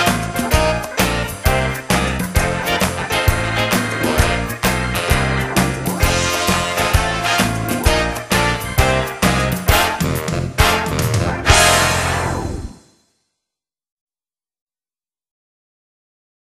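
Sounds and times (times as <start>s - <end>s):
instrumental music: 0.0s - 13.0s.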